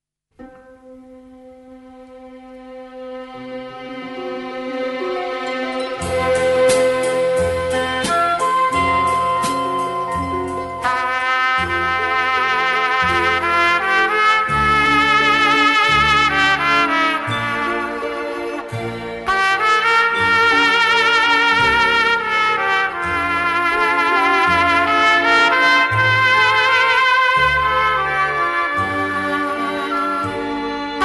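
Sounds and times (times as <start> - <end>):
trumpet: 0.4 - 31.0.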